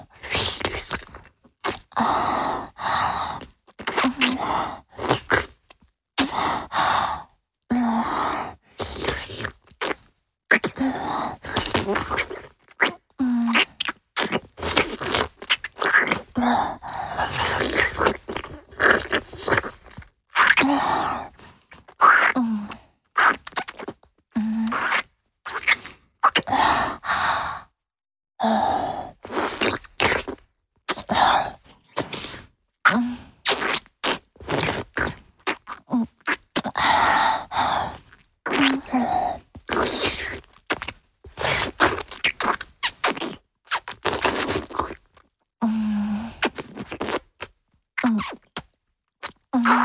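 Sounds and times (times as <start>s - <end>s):
high-pitched sucking mouth sounds: 0.2s - 2.7s, 3.3s - 6.8s, 7.8s - 27.1s, 28.5s - 49.8s.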